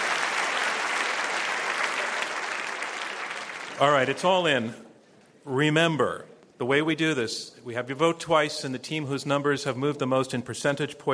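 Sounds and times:
audience applause: 0:00.0 - 0:04.2
speech: 0:03.8 - 0:04.8, 0:05.5 - 0:11.1.

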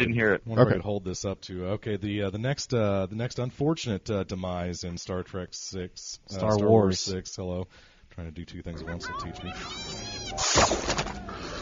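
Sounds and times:
speech: 0:00.0 - 0:11.1
toy space fly sound effect: 0:09.5 - 0:11.3.

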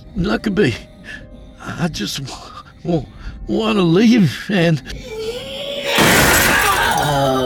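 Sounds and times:
speech: 0:00.2 - 0:05.2
first-floor glass windows shattering and bursting outwards: 0:06.0 - 0:07.3.

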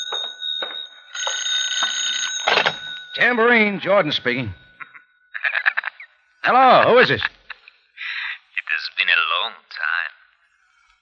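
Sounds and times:
telephone ringing: 0:00.0 - 0:07.2
speech: 0:03.2 - 0:04.6, 0:06.4 - 0:07.4
laughter: 0:04.8 - 0:08.4.

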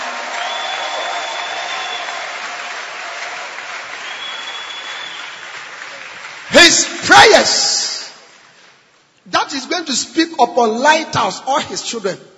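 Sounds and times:
audience clapping hands: 0:00.0 - 0:09.1
speech: 0:06.7 - 0:07.7, 0:09.9 - 0:12.3.

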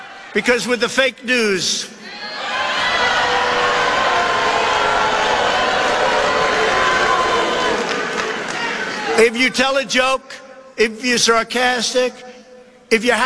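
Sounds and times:
large arena crowd cheering and roaring: 0:00.0 - 0:09.7
speech: 0:00.4 - 0:02.3, 0:09.2 - 0:12.3, 0:12.9 - 0:13.2.

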